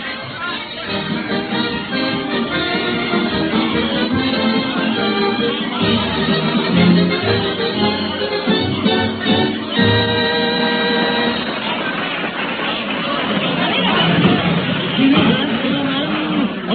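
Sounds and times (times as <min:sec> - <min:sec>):
convention crowd shouting and applauding: 0:00.7 - 0:16.7.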